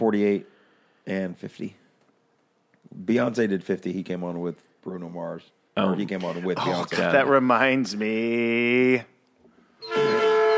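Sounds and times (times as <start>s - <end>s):
speech: 0.0s - 1.8s, 2.9s - 9.1s
train horn blast sound effect: 9.8s - 10.5s.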